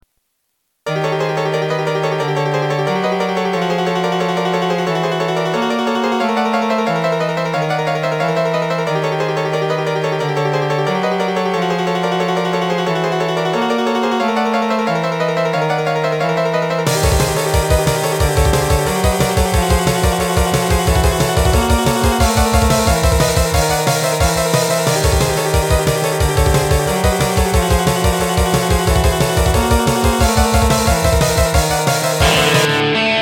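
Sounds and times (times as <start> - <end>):
suspense music: 1.0 - 33.1.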